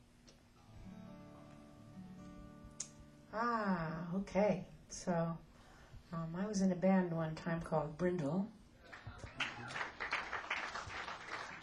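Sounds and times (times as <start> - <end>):
speech: 3.3 - 5.5, 6.1 - 8.6
small smattering of applause: 8.8 - 11.6.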